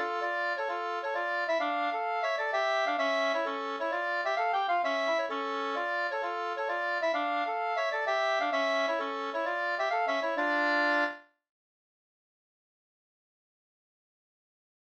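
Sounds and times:
polska springlek folk dance music: 0.0 - 11.2.

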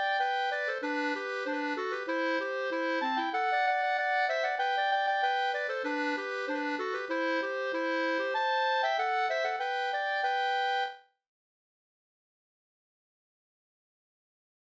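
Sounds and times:
polka music: 0.0 - 11.0.

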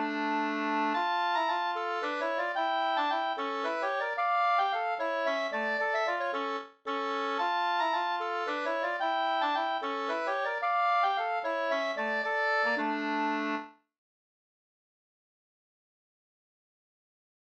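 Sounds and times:
polska folk dance tune: 0.0 - 13.7.

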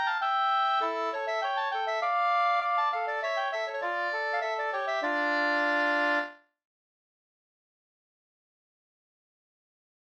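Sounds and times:
polska dance tune: 0.0 - 6.4.

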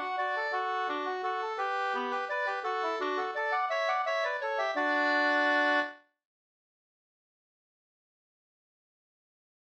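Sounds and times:
waltz in two parts: 0.0 - 6.0.

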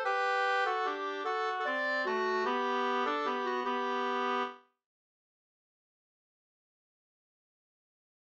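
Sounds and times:
Irish waltz music: 0.0 - 4.5.

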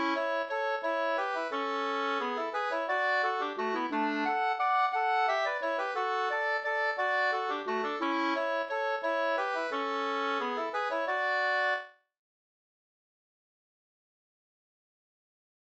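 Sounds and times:
waltz music: 0.0 - 11.9.

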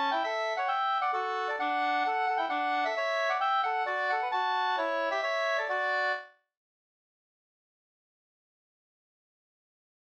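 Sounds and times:
polska dance tune: 0.0 - 6.2.

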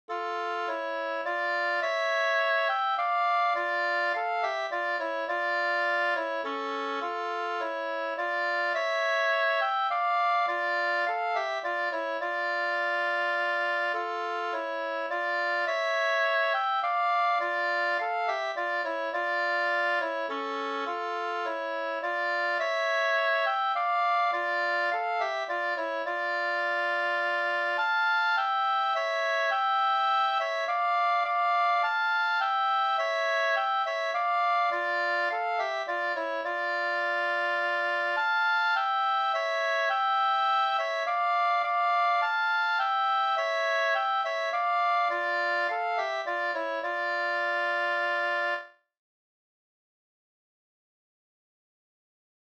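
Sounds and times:
langdans folk dance tune in D minor: 0.0 - 48.8.

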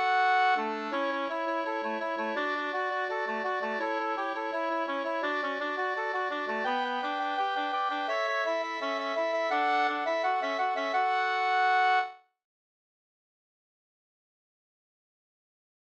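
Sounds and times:
folk dance music: 0.0 - 12.1.

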